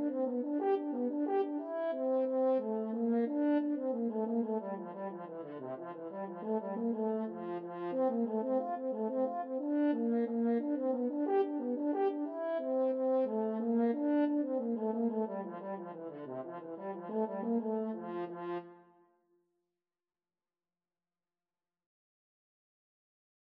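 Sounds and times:
horn playing a hornpipe: 0.0s - 18.7s.

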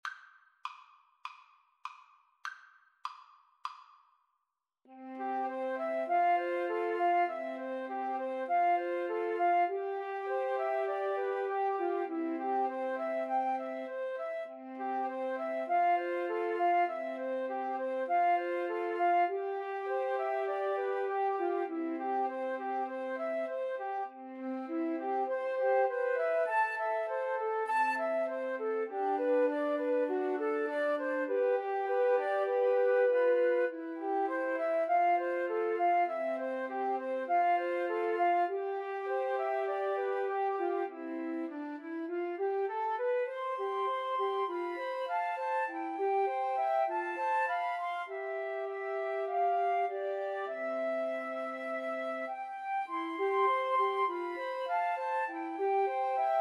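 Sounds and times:
flute trio playing: 4.9s - 56.4s.

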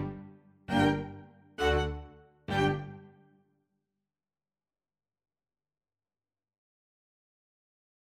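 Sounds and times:
string ensemble playing a sonata: 0.0s - 3.2s.

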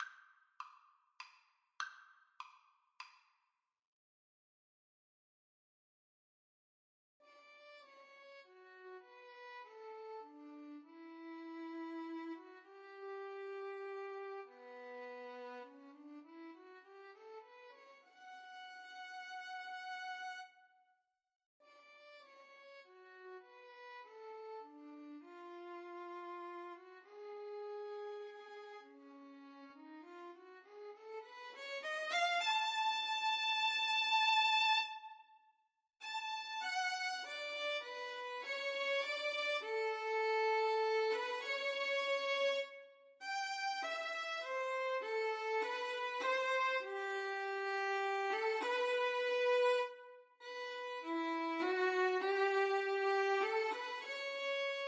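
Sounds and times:
violin duet: 8.7s - 20.5s, 23.0s - 35.2s, 36.0s - 54.8s.

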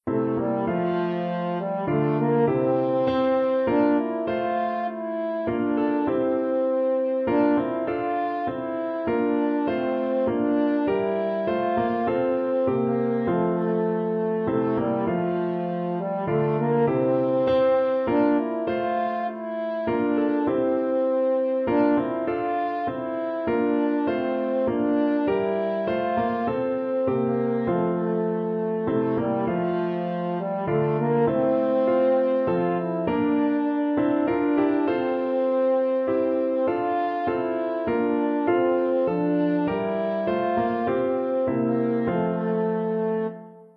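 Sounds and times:
French horn: 0.0s - 43.7s.

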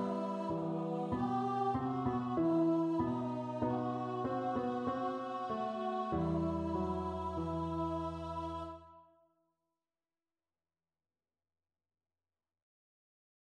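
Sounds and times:
choir singing in unison: 0.0s - 9.1s.

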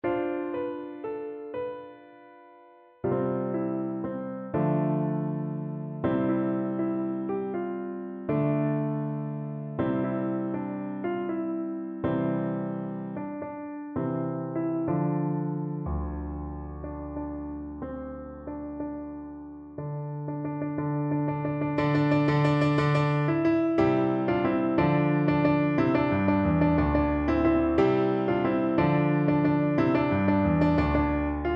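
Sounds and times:
piano: 0.0s - 31.5s.

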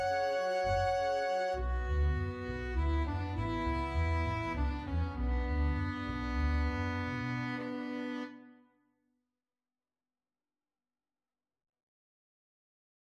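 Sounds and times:
flexible mixed ensemble of 5 players playing: 0.0s - 8.5s
Spanish violin: 0.0s - 8.6s.

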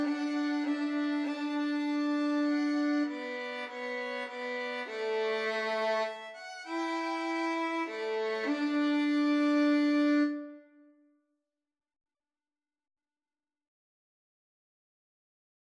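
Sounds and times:
violins playing a nocturne: 0.0s - 10.7s.

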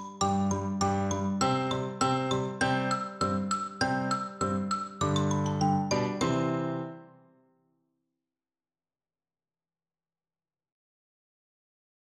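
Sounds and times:
xylophone playing a march: 0.0s - 7.2s.

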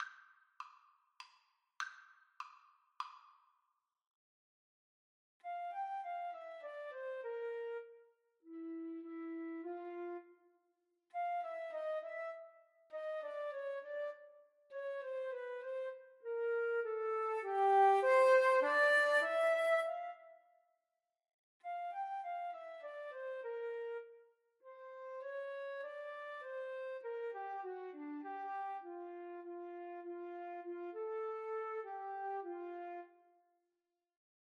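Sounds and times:
flute duet karaoke backing: 5.4s - 10.4s, 11.1s - 20.4s, 21.6s - 33.2s.

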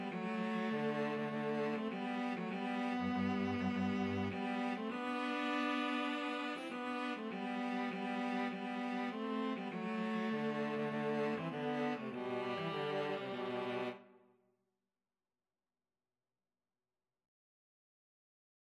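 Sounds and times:
viola and cello duet: 0.0s - 14.0s.

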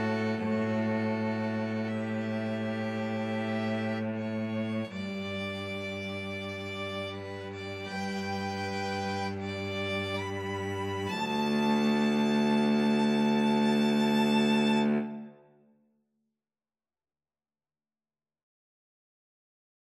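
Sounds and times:
violin and cello duet of an aria: 0.0s - 15.4s.

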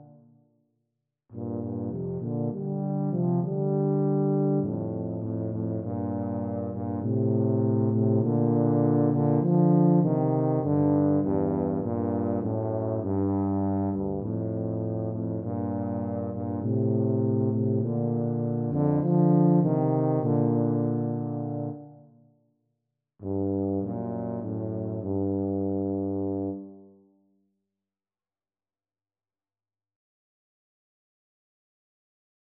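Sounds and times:
tuba trio: 1.4s - 22.0s, 23.2s - 26.9s.

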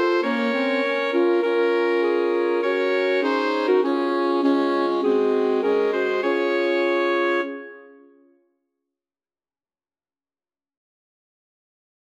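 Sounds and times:
alto sax quartet playing a national anthem: 0.0s - 8.0s.

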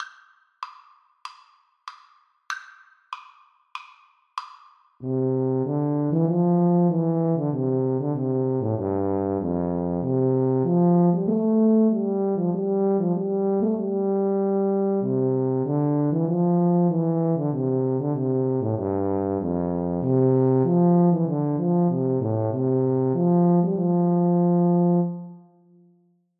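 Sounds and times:
tuba duet: 5.0s - 25.5s.

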